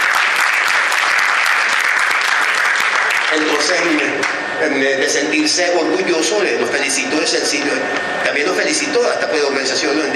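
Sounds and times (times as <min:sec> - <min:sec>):
audience applause: 0:00.0 - 0:04.3
speech: 0:03.3 - 0:10.1.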